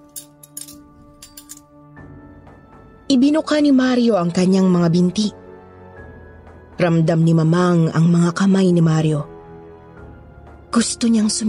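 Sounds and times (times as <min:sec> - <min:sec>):
metal instruments clinking being prepared: 0:00.0 - 0:01.8
speech: 0:03.1 - 0:05.4, 0:06.8 - 0:09.3, 0:10.8 - 0:11.4.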